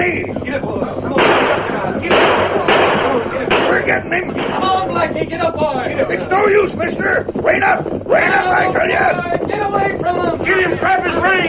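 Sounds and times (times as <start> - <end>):
steady noisy background: 0.0 - 11.4
gunshots from a fleeing rider in a radio western drama: 1.2 - 5.2
speech: 6.5 - 11.4.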